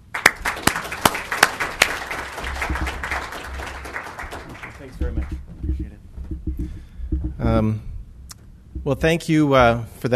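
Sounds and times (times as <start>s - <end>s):
audience at a health-care professional talk clapping: 0.0s - 5.8s
speech: 8.9s - 10.1s.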